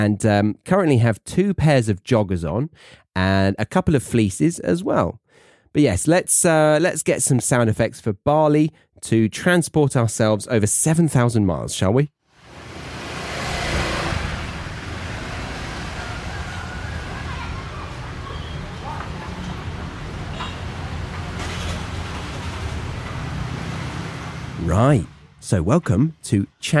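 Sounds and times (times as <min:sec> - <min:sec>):
speech: 0:00.0 - 0:12.2, 0:24.8 - 0:26.7
busy street traffic with mopeds and cars: 0:12.3 - 0:26.7
engine whine: 0:12.4 - 0:25.5.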